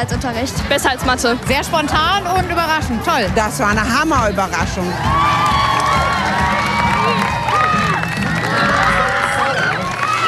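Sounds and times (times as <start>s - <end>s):
speech: 0.0s - 5.6s
schoolchildren cheering and shouting: 5.0s - 10.2s.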